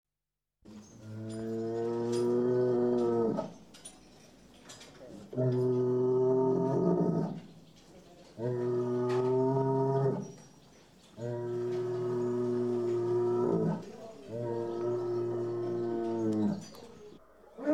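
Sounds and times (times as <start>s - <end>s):
cattle lowing in long deep moos: 1.1s - 3.6s, 5.3s - 7.4s, 8.4s - 10.3s, 11.2s - 16.8s.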